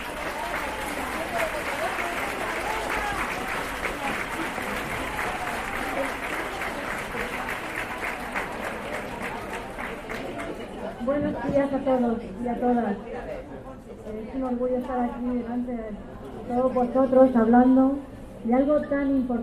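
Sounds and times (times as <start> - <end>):
audience applause: 0.0 - 10.8
speech: 11.6 - 13.2, 14.3 - 19.4.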